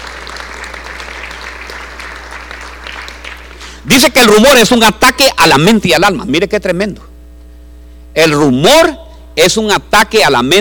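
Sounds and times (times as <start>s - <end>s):
audience applause: 0.0s - 3.6s
speech: 3.8s - 7.1s, 8.2s - 10.6s.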